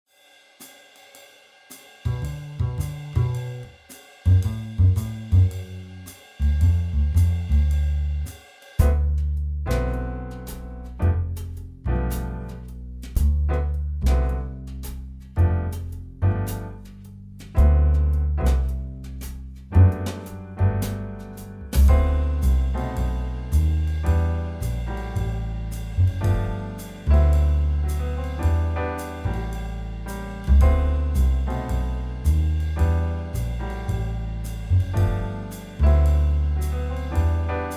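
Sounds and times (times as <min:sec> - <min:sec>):
instrumental music: 0:00.6 - 0:37.7.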